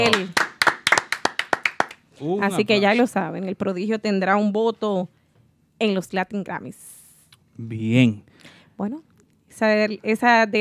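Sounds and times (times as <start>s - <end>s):
speech: 0.0s - 0.4s, 2.2s - 5.2s, 5.8s - 7.0s, 7.6s - 10.5s
studio clapping: 0.0s - 2.1s.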